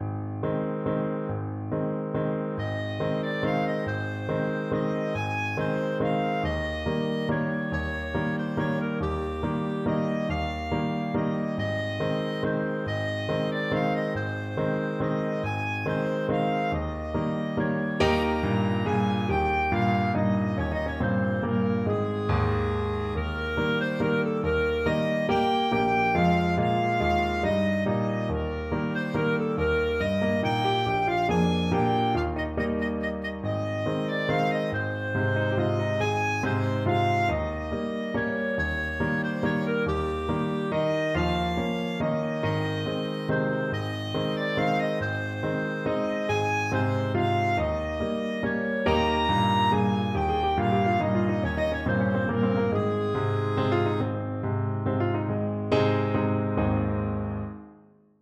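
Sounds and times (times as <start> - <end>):
clarinet: 0.0 - 57.4.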